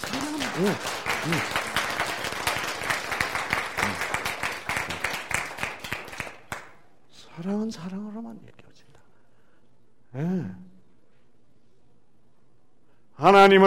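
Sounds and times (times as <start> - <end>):
audience applause: 0.0 - 6.8
speech: 0.1 - 1.6, 7.4 - 8.6, 10.1 - 10.7, 13.2 - 13.6.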